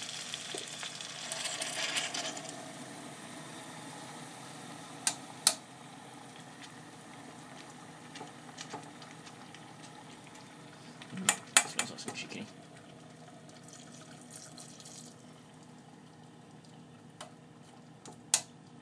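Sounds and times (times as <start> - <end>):
stock sizzling and bubbling in a pot: 0.0 - 18.8.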